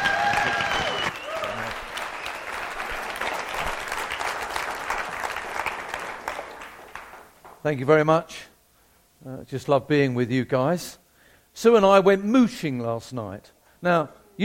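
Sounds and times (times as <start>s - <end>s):
church congregation in Montana applauding a guest speaker: 0.0s - 7.6s
speech: 7.6s - 8.5s, 9.2s - 11.0s, 11.6s - 14.4s.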